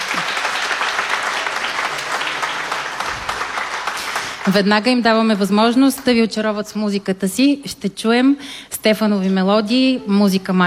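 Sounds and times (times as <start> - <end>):
audience applause: 0.0 - 5.0
speech: 4.4 - 10.6.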